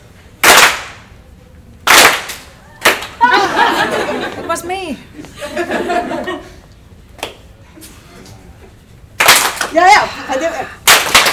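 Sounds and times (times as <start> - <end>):
loud sharp hand claps: 0.4 - 1.1, 1.8 - 5.4, 7.2 - 7.5, 9.2 - 9.9, 10.8 - 11.3
laughter: 2.5 - 6.7, 9.8 - 10.8
speech: 4.5 - 6.5.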